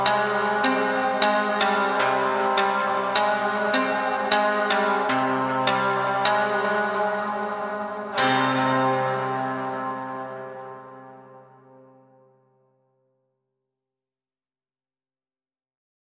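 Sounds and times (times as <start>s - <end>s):
shamisen playing: 0.0s - 10.6s.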